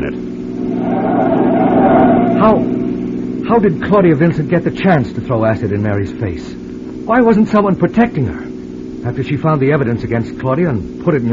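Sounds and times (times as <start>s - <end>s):
car driving fast: 0.3s - 4.5s
wavering high tone: 0.4s - 3.9s
speech: 3.6s - 8.4s, 9.0s - 11.3s.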